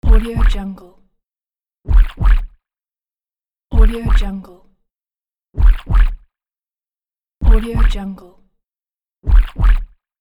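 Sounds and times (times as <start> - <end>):
spooky heartbeat for Halloween: 0.0 - 0.6, 1.9 - 2.6, 3.7 - 4.3, 5.6 - 6.2, 7.4 - 8.0, 9.2 - 9.9.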